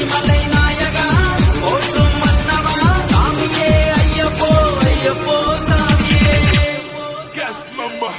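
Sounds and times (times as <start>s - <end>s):
Tamil devotional song ringtone: 0.0s - 8.1s.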